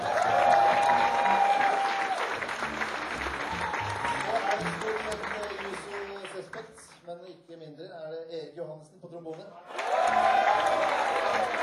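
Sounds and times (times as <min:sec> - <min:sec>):
audience applause: 0:00.0 - 0:06.8, 0:09.7 - 0:11.6.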